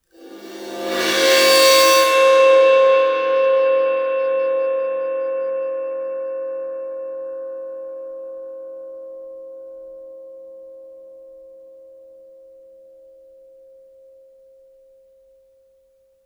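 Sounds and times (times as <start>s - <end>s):
bowed suspended cymbal crash: 0.1s - 7.2s.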